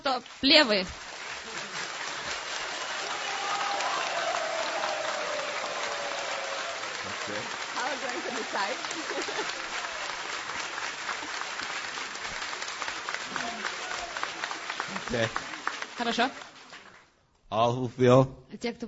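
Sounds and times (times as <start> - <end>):
audience clapping to vote: 0.0 - 17.2
speech: 0.1 - 1.0, 7.3 - 9.9, 15.0 - 16.4, 17.5 - 18.8
laughter: 4.4 - 15.9.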